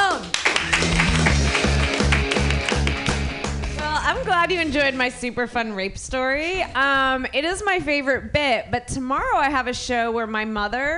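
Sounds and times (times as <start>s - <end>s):
audience clapping: 0.0s - 4.0s
loud rhythmic bass-heavy music track: 0.5s - 10.9s
speech: 4.5s - 10.9s.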